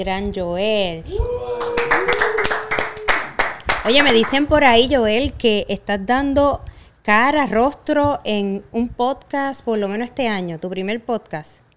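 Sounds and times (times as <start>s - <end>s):
speech: 0.0s - 1.4s, 3.8s - 11.6s
applause, clapping hands: 1.5s - 4.5s.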